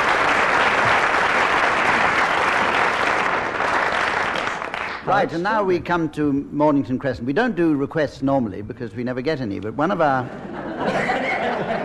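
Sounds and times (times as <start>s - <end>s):
studio audience applause: 0.0s - 5.4s
speech: 5.1s - 11.0s
laughter: 10.2s - 11.8s.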